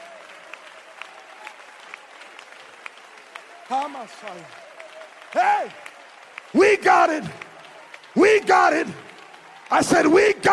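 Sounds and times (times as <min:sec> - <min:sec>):
audience clapping hands: 0:00.0 - 0:10.5
speech: 0:03.7 - 0:04.6, 0:05.3 - 0:05.9, 0:06.5 - 0:07.4, 0:08.2 - 0:09.0, 0:09.7 - 0:10.5.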